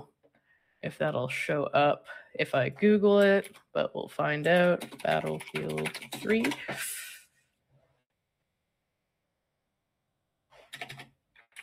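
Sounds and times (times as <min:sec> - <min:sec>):
speech: 0:00.8 - 0:07.1
typing on a computer keyboard: 0:03.2 - 0:03.7, 0:04.4 - 0:07.1, 0:10.6 - 0:11.6.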